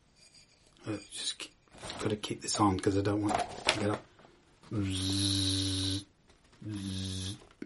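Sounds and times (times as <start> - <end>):
speech: 0.9 - 1.4, 2.0 - 4.1, 4.7 - 7.5
person imitating a wasp buzzing: 4.7 - 7.5.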